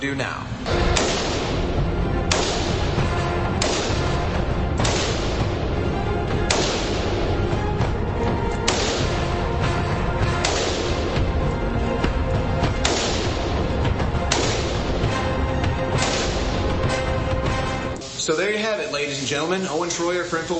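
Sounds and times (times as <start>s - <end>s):
speech: 0.0s - 1.1s, 18.4s - 20.5s
constant loud dense noise: 0.0s - 20.5s
rifle shots at a shooting range: 0.7s - 5.6s, 6.4s - 7.5s, 8.6s - 9.5s, 10.2s - 11.3s, 12.6s - 15.2s, 15.8s - 17.6s.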